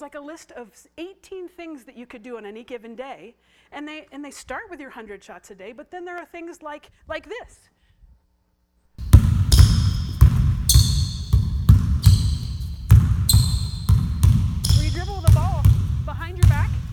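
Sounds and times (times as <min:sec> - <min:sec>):
speech: 0:00.0 - 0:07.8
two basketballs dribbled at once in a drill: 0:09.0 - 0:16.9.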